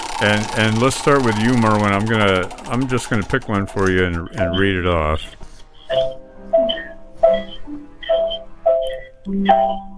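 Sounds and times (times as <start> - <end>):
speech: 0.2 - 5.5, 9.3 - 9.9
Christmas music played over the phone: 4.3 - 9.9.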